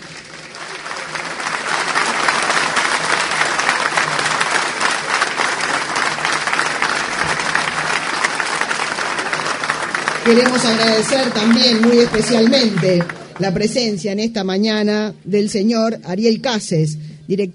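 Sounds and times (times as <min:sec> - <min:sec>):
crowd clapping: 0:00.0 - 0:14.0
speech: 0:10.3 - 0:17.5.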